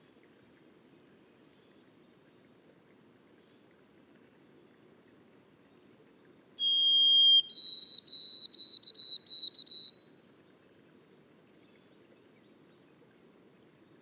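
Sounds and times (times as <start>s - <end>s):
White-throated sparrow whistled song in boreal forest: 6.6s - 10.2s.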